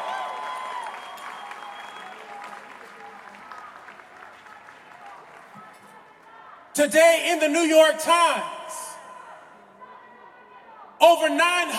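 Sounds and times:
crowd clapping at a rally: 0.0 - 6.4
speech: 6.8 - 8.5, 11.2 - 11.7.

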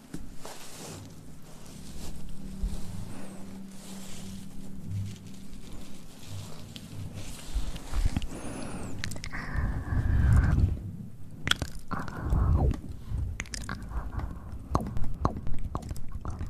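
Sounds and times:
low steady murmur: 0.0 - 16.4
wet chewing and biting mouth sounds: 8.0 - 9.6, 11.4 - 16.4.

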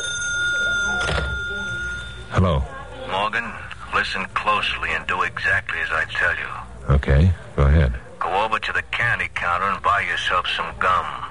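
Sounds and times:
telephone bell ringing: 0.0 - 2.4
speech: 2.4 - 11.2.

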